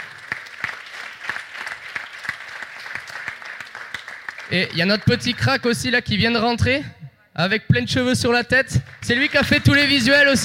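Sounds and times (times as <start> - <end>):
scattered hand claps from a pitch competition audience: 0.0 - 5.6, 8.7 - 10.4
speech: 4.5 - 10.4.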